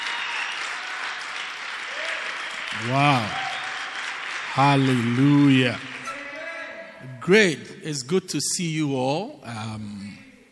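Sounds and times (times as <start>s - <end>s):
audience hand clapping: 0.0s - 6.5s
speech: 2.7s - 3.4s, 4.6s - 6.0s, 7.2s - 10.2s.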